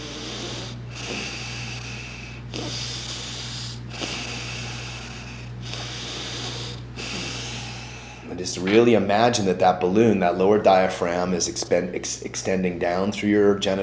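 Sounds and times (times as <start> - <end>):
deep continuous breathing: 0.0 - 8.4
speech: 8.4 - 13.8.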